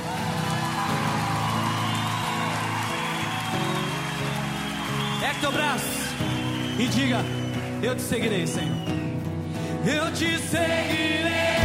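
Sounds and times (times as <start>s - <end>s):
audience applauding: 0.0s - 9.3s
speech: 5.4s - 9.0s, 9.8s - 11.3s.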